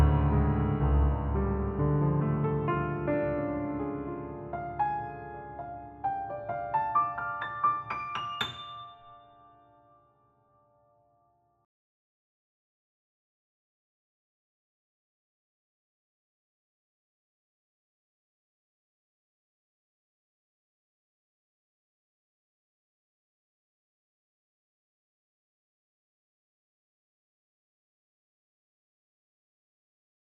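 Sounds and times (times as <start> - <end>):
dramatic piano music: 0.0 - 10.4.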